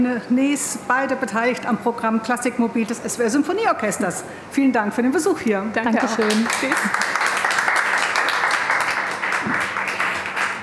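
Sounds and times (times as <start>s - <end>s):
speech: 0.0s - 7.1s
audience applause: 6.2s - 10.6s.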